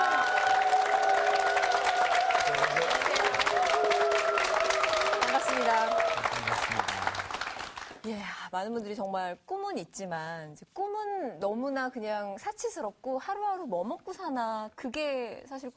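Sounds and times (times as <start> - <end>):
audience applause welcoming a speaker: 0.0 - 8.0
speech: 8.6 - 15.7.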